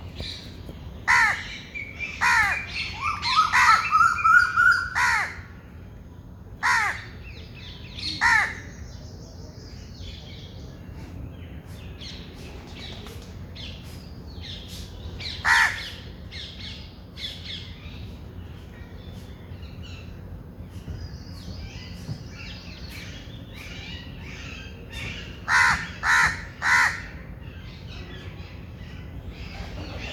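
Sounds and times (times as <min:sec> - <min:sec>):
bird harsh caws: 0:01.1 - 0:05.6, 0:06.6 - 0:07.2, 0:08.2 - 0:08.6, 0:15.4 - 0:16.0, 0:25.4 - 0:27.2.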